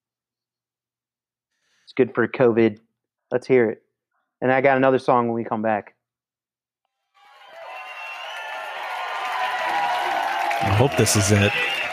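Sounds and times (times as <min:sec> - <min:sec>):
speech: 0:01.9 - 0:03.8, 0:04.4 - 0:06.0, 0:10.8 - 0:11.7
crowd cheering: 0:07.2 - 0:11.9.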